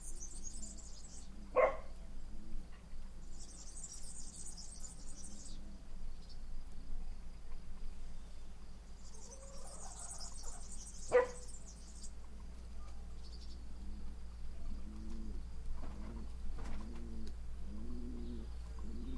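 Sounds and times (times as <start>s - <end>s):
birds: 0.0s - 19.1s
dogs: 1.5s - 2.0s, 11.1s - 11.5s.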